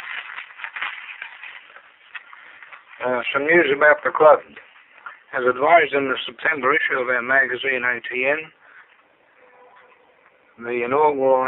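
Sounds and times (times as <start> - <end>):
paper being shuffled: 0.0 - 5.4
speech: 3.0 - 4.6, 5.3 - 8.6, 10.6 - 11.4.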